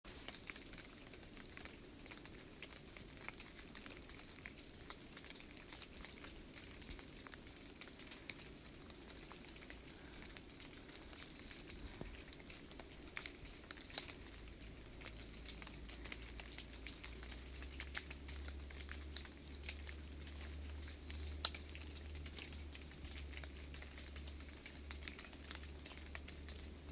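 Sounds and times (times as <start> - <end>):
rain on Tow Hill: 0.1 - 26.9.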